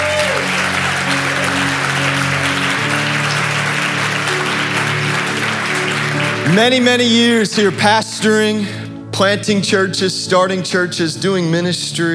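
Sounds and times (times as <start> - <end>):
church congregation applauding welcoming a visiting bishop and his grandson: 0.0 - 8.6
sustained instrumental chords: 0.0 - 10.5
speech: 6.5 - 12.1.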